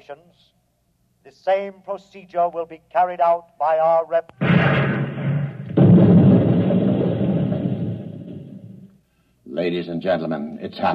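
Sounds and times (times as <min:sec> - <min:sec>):
speech: 0:00.1 - 0:00.6, 0:01.2 - 0:05.0, 0:09.6 - 0:10.9
volley of gunfire from an honor guard with explosive bullets: 0:04.4 - 0:08.9.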